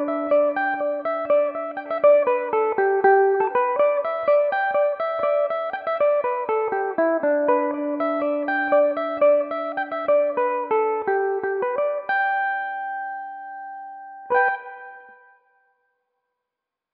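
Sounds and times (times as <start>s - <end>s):
Irish mandolin playing a polka in G major: 0.0s - 12.5s.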